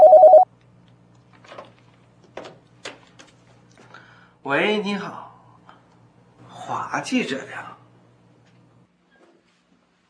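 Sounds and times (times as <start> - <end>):
telephone ringing: 0.0 - 0.4
speech: 4.4 - 5.3, 6.7 - 7.8.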